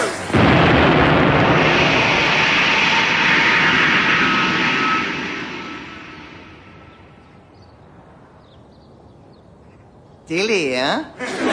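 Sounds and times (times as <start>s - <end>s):
rocket launching with roar: 0.0s - 7.3s
speech: 10.3s - 11.5s
laughter: 11.2s - 11.5s.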